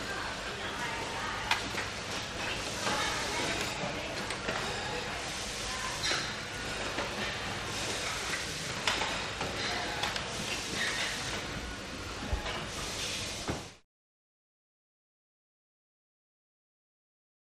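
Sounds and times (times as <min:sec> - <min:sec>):
large busy factory noise: 0:00.0 - 0:13.8.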